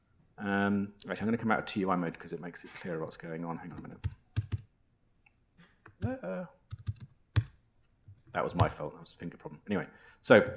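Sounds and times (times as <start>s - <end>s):
speech: 0.4s - 4.2s, 6.0s - 6.6s, 8.4s - 10.5s
computer keyboard keystrokes while a Python script is typed: 5.9s - 8.8s.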